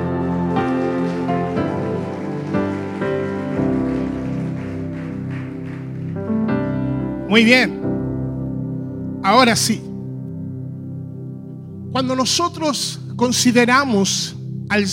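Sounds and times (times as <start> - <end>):
audience applause: 0.0 - 6.7
sustained keyboard chords: 0.0 - 14.9
speech: 7.3 - 7.8, 9.3 - 9.9, 12.0 - 14.9.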